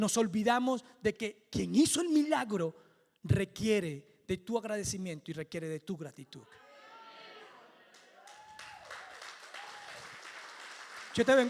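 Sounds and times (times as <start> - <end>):
speech: 0.0 - 6.6, 11.2 - 11.4
audience applauding: 7.9 - 11.4.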